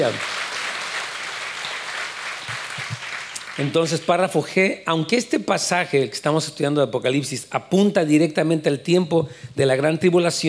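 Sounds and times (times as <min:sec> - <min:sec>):
speech: 0:00.0 - 0:00.3, 0:03.6 - 0:10.4
audience applause: 0:00.0 - 0:04.0.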